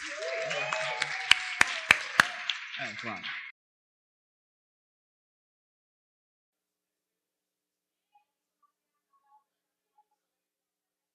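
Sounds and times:
hand clapping: 0.0 - 3.5
speech: 2.8 - 3.4.

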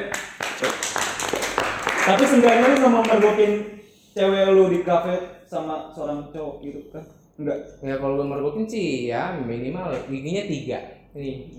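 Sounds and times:
applause: 0.0 - 3.6
speech: 2.1 - 11.5.

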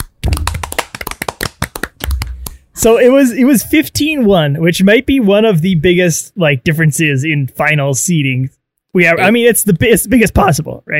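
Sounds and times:
hosts clapping hands: 0.0 - 2.7
speech: 2.8 - 10.9.

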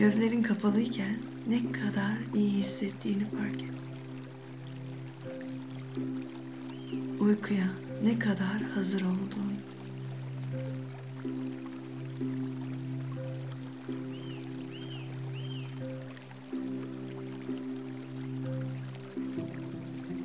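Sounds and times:
speech: 0.0 - 3.9, 6.0 - 9.6
low humming drone: 0.0 - 20.2
river water flowing: 0.0 - 20.2.

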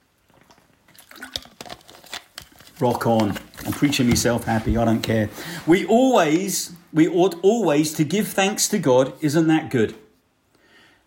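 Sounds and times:
person sipping a drink: 0.0 - 2.8
speech: 2.8 - 10.0.

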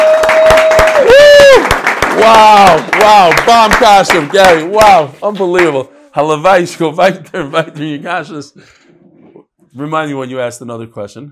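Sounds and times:
audience applause: 0.0 - 5.7
speech: 2.3 - 8.8, 9.8 - 11.3.

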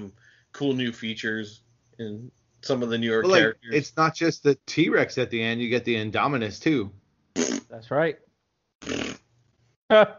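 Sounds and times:
speech: 0.0 - 9.0, 9.9 - 10.1
mouth-made fart noises: 7.4 - 7.7, 8.8 - 9.3.

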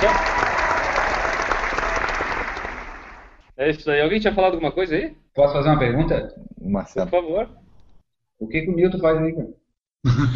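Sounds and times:
audience applause: 0.0 - 3.5
speech: 3.6 - 7.6, 8.4 - 10.3.

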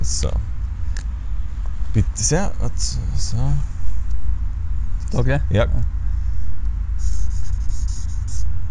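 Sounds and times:
low hum: 0.0 - 8.6
speech: 0.1 - 0.4, 2.0 - 3.7, 5.1 - 6.0
pen scratching a signature in a guest book: 7.0 - 8.5.

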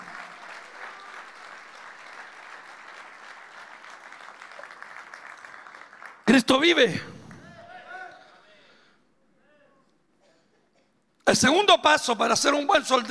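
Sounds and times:
audience applause: 0.0 - 7.6
speech: 6.3 - 7.1, 11.3 - 13.0.

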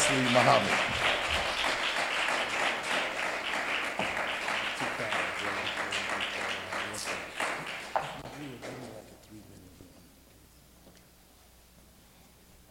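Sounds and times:
large crowd applauding: 0.0 - 8.9.

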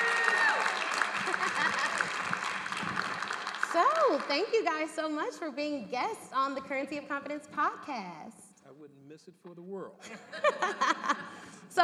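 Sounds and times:
round of applause: 0.0 - 4.5
laughter: 1.0 - 2.4, 10.0 - 11.6
speech: 4.1 - 11.8.

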